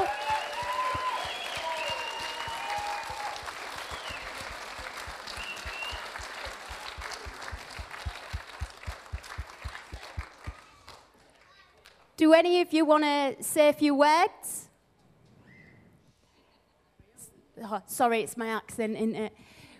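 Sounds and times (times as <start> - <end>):
standing audience applause: 0.0 - 11.5
speech: 12.2 - 14.5, 17.7 - 19.5.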